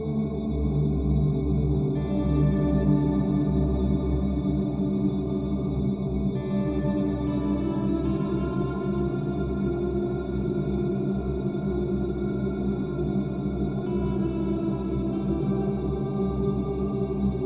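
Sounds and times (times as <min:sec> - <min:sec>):
deep ambience: 0:00.1 - 0:17.4.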